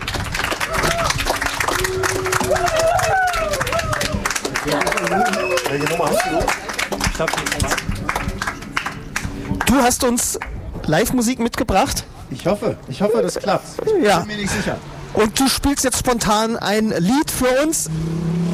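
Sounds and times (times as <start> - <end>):
audience applause: 0.0 - 9.9
speech: 7.2 - 7.9, 9.8 - 18.4.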